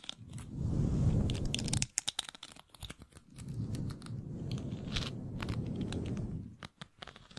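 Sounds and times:
microphone brushed and scratched: 0:00.0 - 0:01.9, 0:03.2 - 0:06.7.

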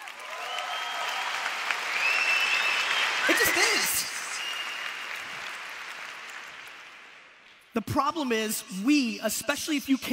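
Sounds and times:
audience applause: 0:00.0 - 0:07.4
faint whistles: 0:01.9 - 0:03.3, 0:04.0 - 0:05.0
speech: 0:07.8 - 0:10.1.

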